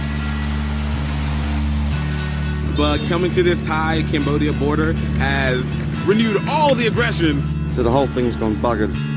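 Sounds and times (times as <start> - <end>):
heavy rain pouring down: 0.0 - 3.1
speech: 2.8 - 9.0.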